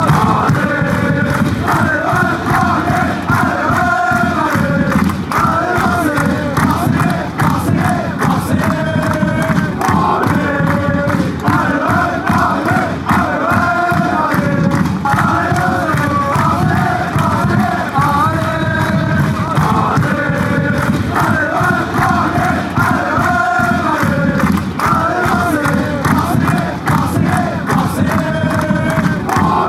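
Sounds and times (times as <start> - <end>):
fans chanting: 0.0 - 29.6.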